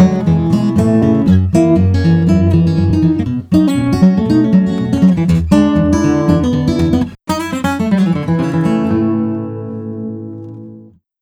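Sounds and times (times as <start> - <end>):
country jazz guitar: 0.0 - 11.0.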